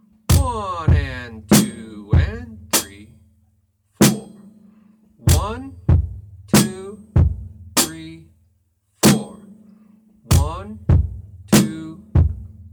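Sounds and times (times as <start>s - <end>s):
drum beat: 0.3s - 3.1s, 4.0s - 4.4s, 5.3s - 8.2s, 9.0s - 9.4s, 10.3s - 12.7s.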